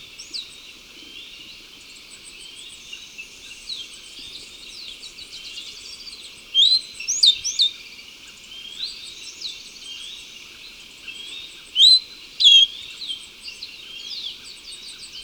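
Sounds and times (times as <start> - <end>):
Slaty Brush-Finch calling in South America: 11.8 - 12.7.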